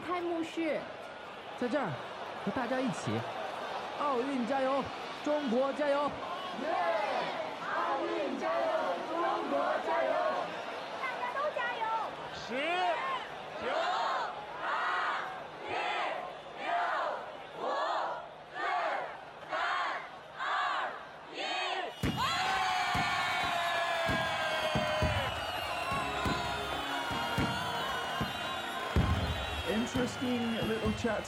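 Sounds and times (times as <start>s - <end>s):
crowd cheering: 0.0s - 31.2s
speech: 0.2s - 1.0s, 1.6s - 3.4s, 4.0s - 7.1s, 31.0s - 31.2s.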